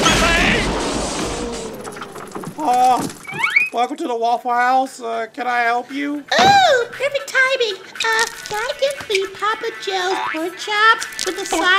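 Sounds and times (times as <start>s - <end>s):
bomb explosion sound effect: 0.0s - 3.1s
speech: 2.6s - 11.7s.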